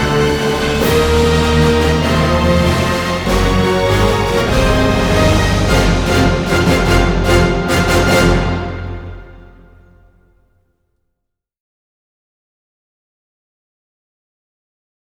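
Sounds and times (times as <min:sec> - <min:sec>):
orchestra playing: 0:00.0 - 0:10.3.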